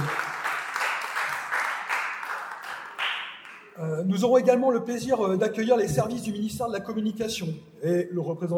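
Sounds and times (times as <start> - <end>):
people applauding: 0.0 - 3.8
speech: 4.0 - 8.5.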